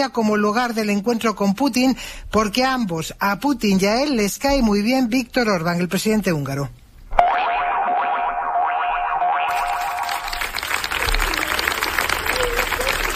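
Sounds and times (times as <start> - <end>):
speech: 0.0 - 6.8
warbling electronic tone: 7.1 - 10.4
crowd applause at end of a gathering: 9.5 - 13.1.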